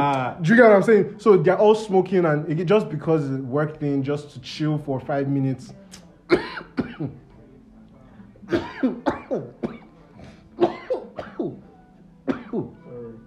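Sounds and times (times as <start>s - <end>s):
speech: 0.0s - 7.2s, 8.5s - 9.8s, 12.3s - 12.8s
repeated harsh coughing: 6.3s - 7.2s, 8.5s - 11.6s, 12.3s - 12.8s.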